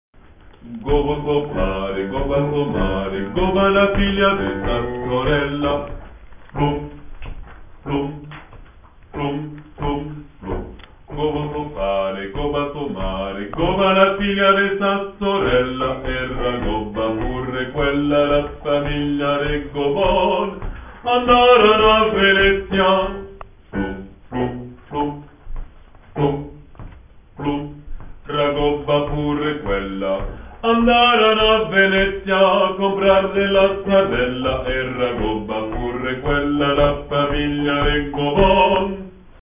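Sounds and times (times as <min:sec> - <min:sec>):
basses: 0:00.2 - 0:39.4.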